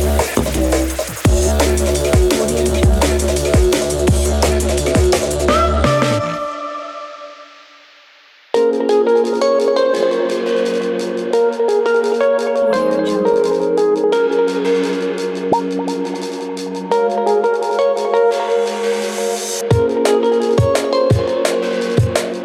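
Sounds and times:
drum and bass music: 0:00.0 - 0:22.4.

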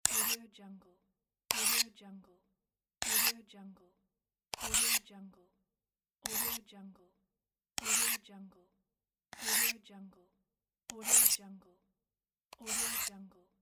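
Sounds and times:
pocket knife sharpening with a diamond stone: 0:00.0 - 0:00.4, 0:01.5 - 0:01.9, 0:03.0 - 0:03.4, 0:04.5 - 0:05.0, 0:06.2 - 0:06.6, 0:07.8 - 0:08.2, 0:09.3 - 0:09.8, 0:10.9 - 0:11.4, 0:12.5 - 0:13.1.

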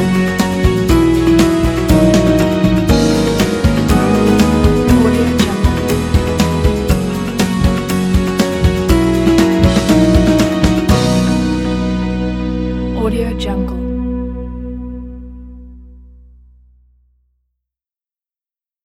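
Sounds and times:
romantic acoustic slide guitar: 0:00.0 - 0:14.8.

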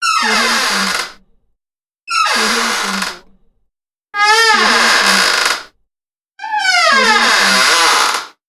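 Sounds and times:
doors creaking: 0:00.0 - 0:01.2, 0:02.1 - 0:03.4, 0:04.2 - 0:05.7, 0:06.4 - 0:08.3.

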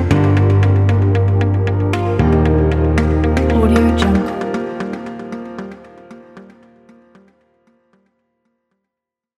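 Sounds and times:
motivational pop music: 0:00.0 - 0:07.0.

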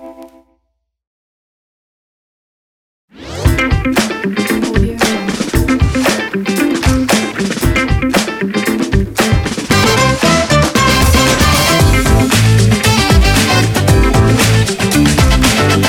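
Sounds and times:
groovy upbeat funk opener: 0:03.2 - 0:15.8.

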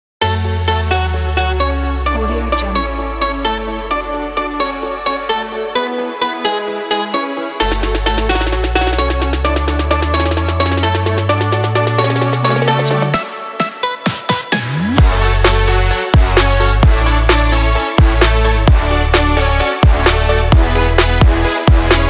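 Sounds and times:
pop trap music: 0:00.2 - 0:22.0.

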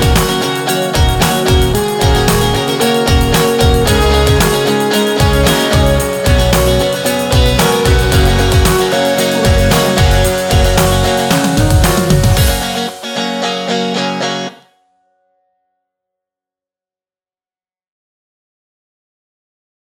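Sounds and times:
guitar pop music: 0:00.0 - 0:15.2.

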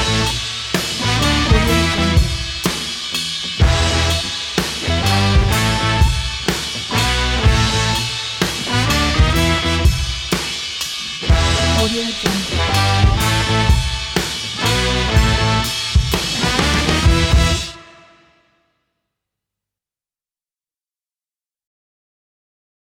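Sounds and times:
sexy downbeat blues with rock ending: 0:00.0 - 0:17.7.

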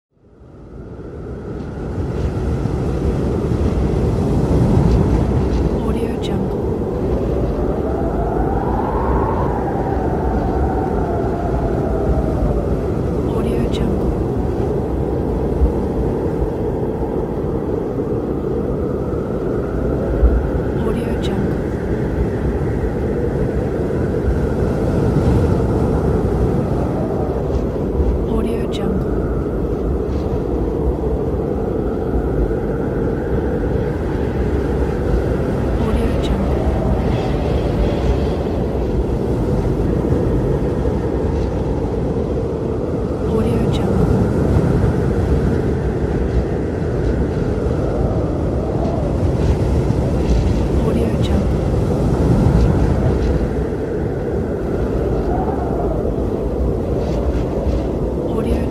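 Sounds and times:
blizzard wind: 0:00.1 - 0:58.6.

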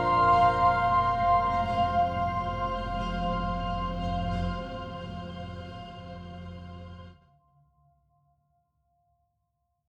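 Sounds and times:
beautiful calm background sound: 0:00.0 - 0:07.2.

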